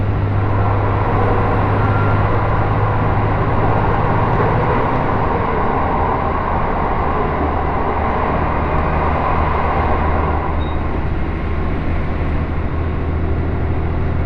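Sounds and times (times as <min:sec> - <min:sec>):
Takayama Main Line local train rumble: 0:00.0 - 0:14.2
deep engine drone: 0:00.0 - 0:14.2.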